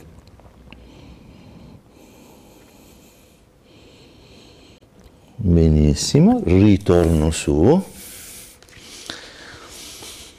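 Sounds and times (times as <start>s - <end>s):
deep breaths during stretching: 0.8s - 5.4s, 7.9s - 10.3s
speech: 5.4s - 7.9s.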